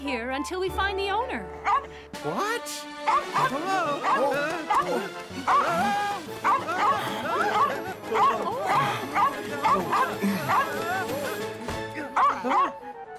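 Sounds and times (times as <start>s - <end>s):
speech: 0.0s - 11.3s
small lost dog yapping in high-pitched bursts: 1.6s - 1.9s, 3.1s - 5.6s, 6.4s - 10.7s, 12.2s - 12.7s
laughter: 3.1s - 12.9s.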